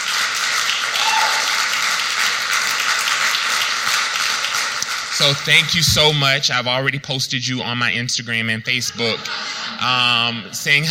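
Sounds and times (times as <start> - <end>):
audience applause: 0.0 - 6.3
speech: 5.2 - 10.8
laughter: 8.7 - 10.8.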